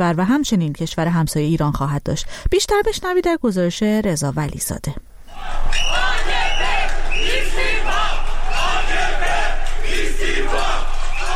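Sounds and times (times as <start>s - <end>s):
speech: 0.0s - 6.0s
protesters in Istanbul chanting for Erdogan's resignation: 5.3s - 11.3s.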